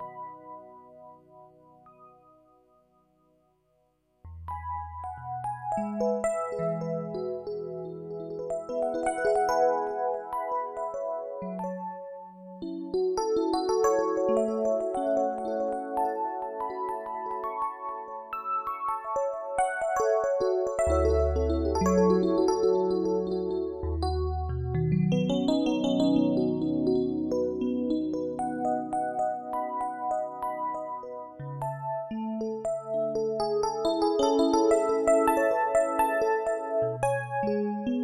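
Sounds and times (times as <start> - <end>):
electric piano: 4.3 - 38.0.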